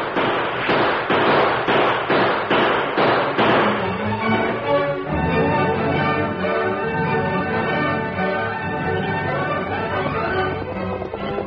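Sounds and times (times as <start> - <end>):
gunfire sound effect in a Lone Ranger radio drama: 0.0 - 4.4
sustained music: 3.4 - 11.4.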